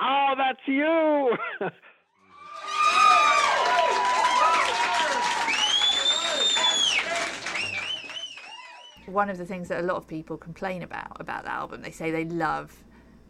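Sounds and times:
speech: 0.5s - 2.0s, 9.1s - 12.9s
concert audience screaming and shrieking: 2.3s - 9.0s.

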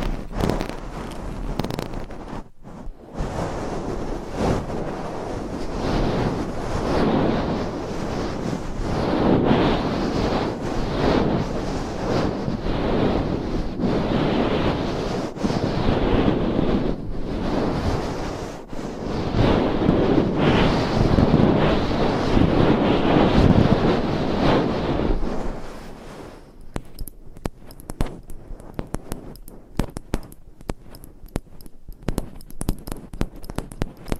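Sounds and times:
binaural microphone scratching: 0.0s - 34.1s
tapping: 26.7s - 34.1s.

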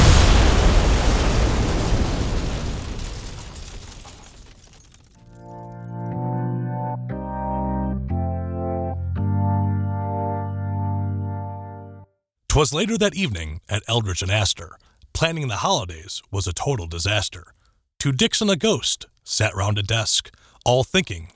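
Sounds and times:
bomb explosion: 0.0s - 4.0s
sustained musical chords: 5.5s - 12.0s
speech: 12.6s - 21.3s.

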